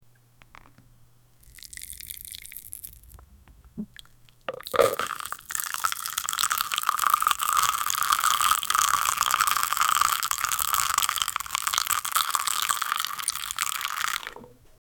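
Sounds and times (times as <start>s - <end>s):
liquid sound: 1.4s - 14.6s.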